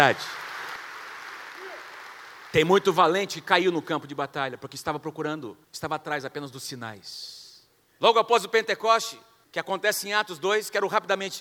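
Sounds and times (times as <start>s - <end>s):
speech: 0.0s - 0.4s, 2.5s - 7.4s, 8.0s - 11.4s
crowd clapping: 0.0s - 2.8s.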